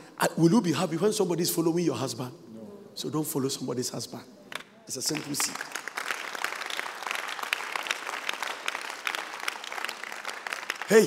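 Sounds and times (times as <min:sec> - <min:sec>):
speech: 0:00.2 - 0:05.8
audience clapping: 0:04.5 - 0:11.0.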